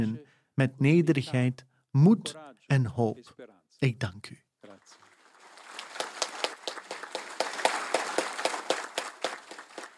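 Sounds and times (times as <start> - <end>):
speech: 0.0 - 5.0
applause from cardinals gathered around Pope Leo XIV: 4.6 - 9.9.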